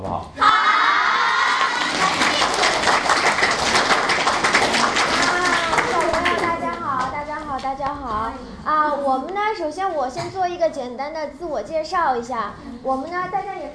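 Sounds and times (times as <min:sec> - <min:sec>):
speech: 0:00.0 - 0:00.4, 0:07.7 - 0:13.7
audience applause welcoming the host: 0:00.7 - 0:06.8.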